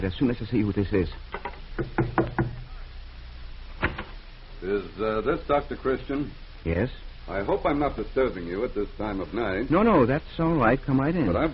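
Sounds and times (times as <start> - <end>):
speech: 0.0 - 2.2, 4.7 - 11.5
knocking on a door: 1.8 - 2.7.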